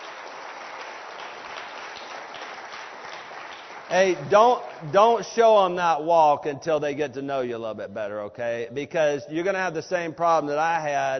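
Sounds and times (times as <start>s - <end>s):
audience clapping for a volunteer: 0.0s - 5.8s
speech: 3.9s - 11.1s.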